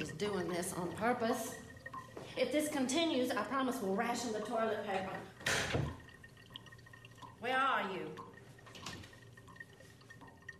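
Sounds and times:
speech: 0.0s - 1.7s, 2.4s - 5.9s, 7.4s - 8.3s
water overflowing from a toilet: 0.0s - 10.5s.

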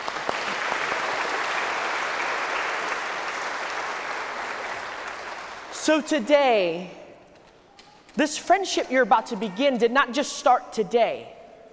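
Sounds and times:
audience round of applause: 0.0s - 5.7s
speech: 5.8s - 7.0s, 8.2s - 11.4s.

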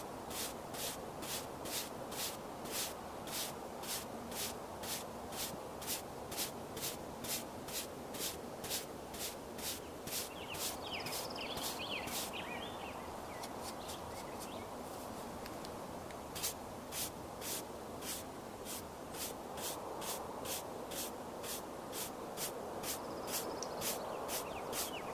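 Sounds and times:
soft rubbing hiss of makeup being applied: 0.0s - 12.6s, 13.2s - 25.0s
birds chirping: 9.8s - 14.8s, 23.0s - 25.1s.

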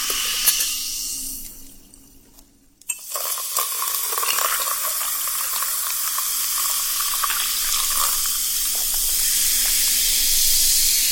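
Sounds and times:
sparkling soda water fizzing: 0.0s - 1.8s, 2.9s - 11.1s.

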